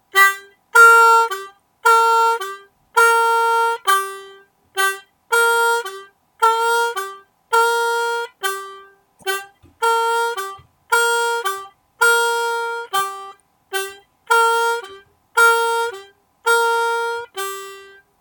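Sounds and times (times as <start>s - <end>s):
harmonica in the key of G: 0.1s - 18.2s.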